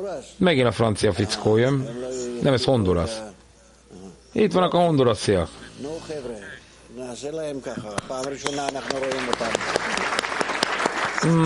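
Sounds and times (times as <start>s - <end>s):
speech: 0.0s - 3.4s, 4.4s - 10.0s, 11.2s - 11.4s
audience applause: 8.2s - 11.4s.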